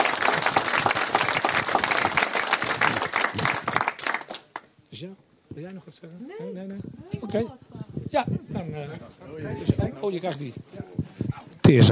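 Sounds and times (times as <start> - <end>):
audience applauding: 0.0 - 4.7
speech: 5.0 - 10.8, 11.7 - 11.9.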